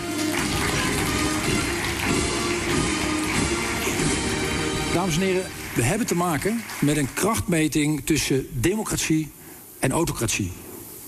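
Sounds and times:
warm applause from a large crowd: 0.0s - 7.7s
speech: 5.0s - 10.6s.

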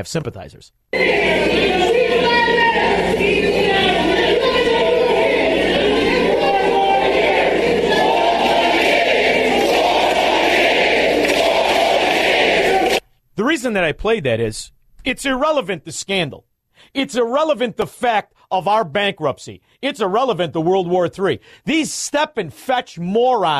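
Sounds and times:
speech: 0.0s - 4.1s, 13.4s - 23.5s
room full of people yelling four more years: 1.0s - 13.0s.

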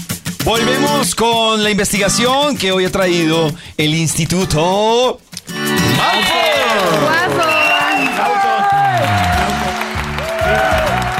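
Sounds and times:
speech: 0.5s - 5.2s, 6.0s - 7.5s
applause: 6.0s - 11.1s.

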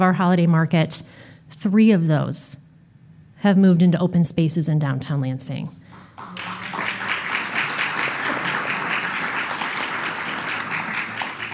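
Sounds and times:
speech: 0.0s - 2.6s, 3.4s - 6.5s
audience round of applause: 6.0s - 11.5s.

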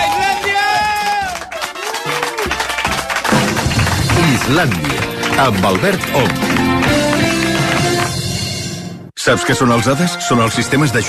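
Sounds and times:
applause: 0.0s - 8.3s
speech: 4.5s - 6.9s, 9.2s - 11.0s.

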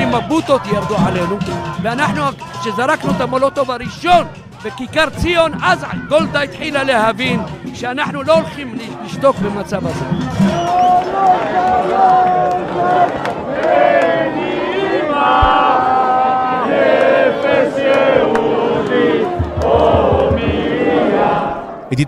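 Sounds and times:
crowd shouting slogans at journalists: 0.0s - 21.9s
speech: 0.1s - 14.4s
low thumping: 15.2s - 16.4s.

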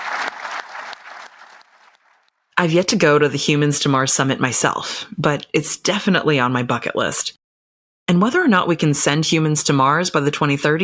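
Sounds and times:
audience applause: 0.0s - 2.3s
speech: 2.6s - 7.4s, 8.1s - 10.8s.

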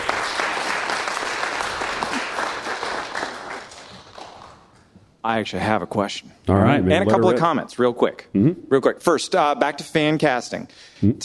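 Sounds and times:
audience applause: 0.0s - 4.7s
speech: 5.2s - 11.2s.

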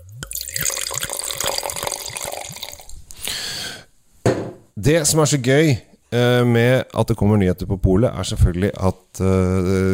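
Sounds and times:
wine being poured into a glass: 0.1s - 3.0s
speech: 4.3s - 9.9s.

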